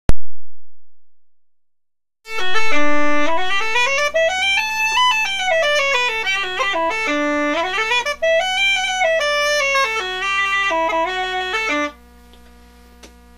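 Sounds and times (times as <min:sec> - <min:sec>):
Childress uilleann pipes chanter playing alone: 0:02.3 - 0:12.0.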